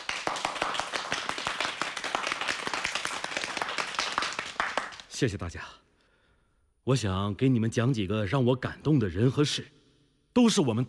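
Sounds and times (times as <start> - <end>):
crowd applauding: 0.0 - 5.1
speech: 5.2 - 5.8, 6.8 - 9.8, 10.4 - 10.8.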